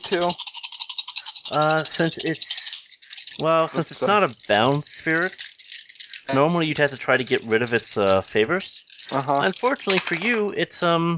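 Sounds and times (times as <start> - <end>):
speech: 0.0 - 0.5, 1.5 - 2.6, 3.4 - 5.5, 6.3 - 11.1
seven dice rattling: 0.0 - 10.8.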